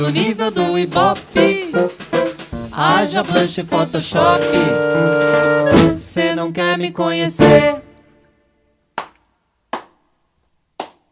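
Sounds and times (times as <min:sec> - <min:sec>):
speech: 0:00.0 - 0:02.0, 0:02.8 - 0:07.8
slow hand claps at end of song: 0:09.0 - 0:10.1, 0:10.7 - 0:11.1.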